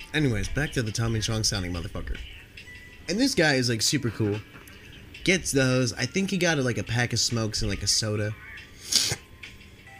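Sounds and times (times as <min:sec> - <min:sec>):
speech: 0:00.1 - 0:02.4, 0:03.1 - 0:04.6, 0:05.2 - 0:09.2
person sniffling: 0:08.7 - 0:09.3.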